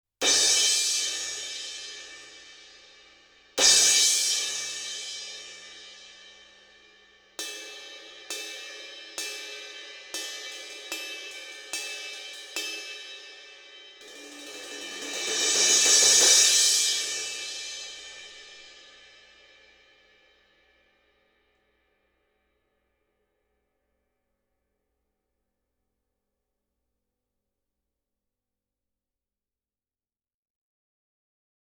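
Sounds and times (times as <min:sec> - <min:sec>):
crash cymbal: 0:00.2 - 0:20.6.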